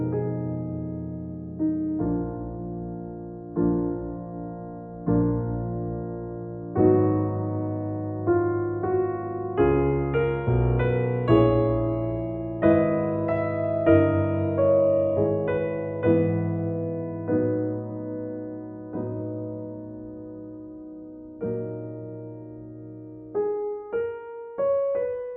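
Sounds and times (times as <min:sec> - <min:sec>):
classical prelude in E-flat minor: 0:00.0 - 0:25.3.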